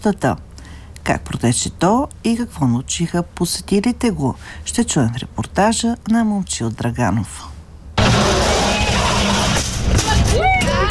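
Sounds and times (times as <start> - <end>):
speech: 0.0 - 0.5, 1.1 - 7.5
frontal crash simulator: 8.0 - 10.8.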